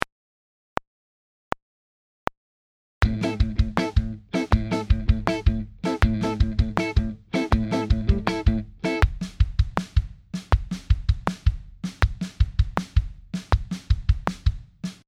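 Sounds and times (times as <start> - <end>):
kick and snare drum groove: 3.0 - 15.0.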